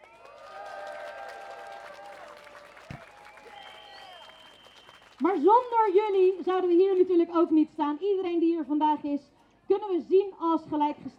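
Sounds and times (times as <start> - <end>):
protest crowd cheering: 0.0 - 5.6
protest crowd clapping: 0.0 - 7.1
whistles: 2.6 - 5.2
speech: 5.2 - 11.1.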